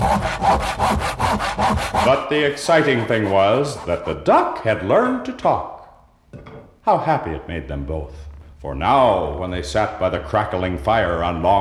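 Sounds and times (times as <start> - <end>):
carpenter's hand saw cutting through wood: 0.0 - 4.2
speech: 2.1 - 11.6.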